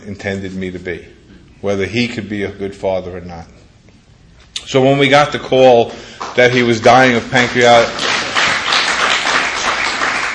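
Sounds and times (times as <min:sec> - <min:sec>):
speech: 0:00.0 - 0:03.6, 0:04.7 - 0:08.1
audience clapping: 0:06.1 - 0:10.3.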